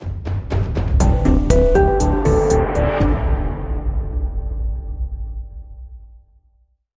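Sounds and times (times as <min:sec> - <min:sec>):
musical stinger: 0:01.0 - 0:05.8.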